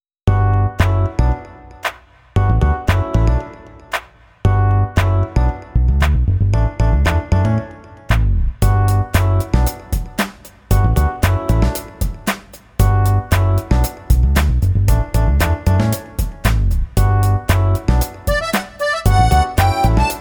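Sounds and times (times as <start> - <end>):
background music: 0.4 - 20.2.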